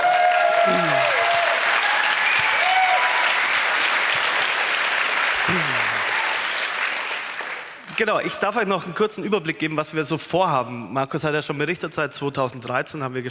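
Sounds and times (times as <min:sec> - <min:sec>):
vocal whoops: 0:00.0 - 0:03.3, 0:05.4 - 0:06.4
audience applause: 0:00.0 - 0:08.4
speech: 0:00.7 - 0:01.1, 0:08.0 - 0:13.2.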